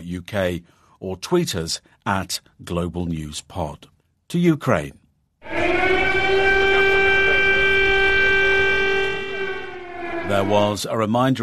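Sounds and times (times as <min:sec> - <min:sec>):
speech: 0:00.1 - 0:06.4, 0:10.3 - 0:11.4
siren sounding a steady tone: 0:05.4 - 0:10.8.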